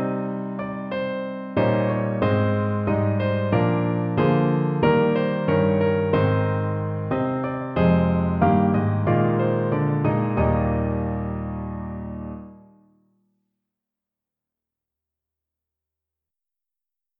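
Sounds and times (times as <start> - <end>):
descant piano: 0.0 - 12.8.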